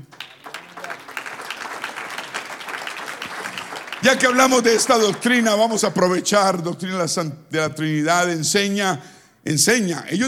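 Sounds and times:
audience applause: 0.0s - 5.7s
speech: 4.0s - 10.2s.

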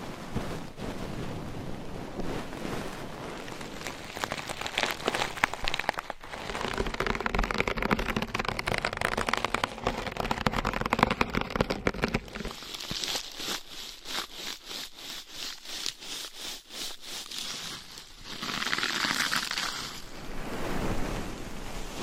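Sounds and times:
dense crackly rustling: 0.0s - 22.0s
scratching: 3.3s - 20.1s
quick tapping: 6.6s - 12.6s.

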